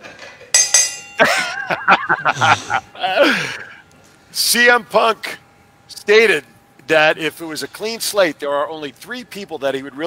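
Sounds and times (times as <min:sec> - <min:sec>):
bright bell strikes: 0:00.6 - 0:01.6
speech: 0:01.2 - 0:03.6, 0:04.4 - 0:05.4, 0:06.1 - 0:10.0
laughter: 0:01.2 - 0:03.8.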